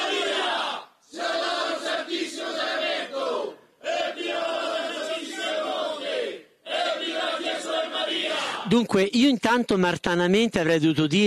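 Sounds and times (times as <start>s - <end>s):
crowd shouting evviva in unison: 0.0s - 8.7s
speech: 8.7s - 11.2s.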